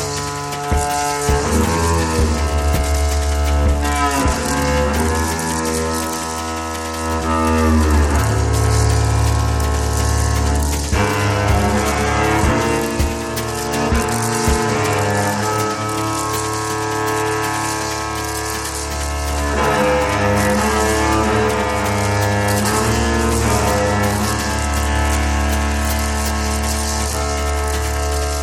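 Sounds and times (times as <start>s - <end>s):
bass percussion: 0.0s - 28.4s.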